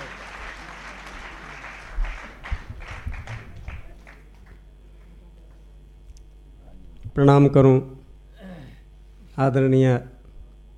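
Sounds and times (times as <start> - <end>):
audience applause: 0.0 - 5.3
speech: 7.2 - 8.0, 9.4 - 10.1.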